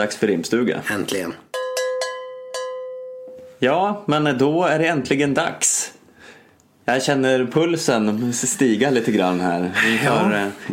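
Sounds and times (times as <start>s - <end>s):
speech: 0.0s - 1.5s, 3.6s - 6.0s, 6.9s - 10.7s
small cowbell struck: 1.5s - 3.5s.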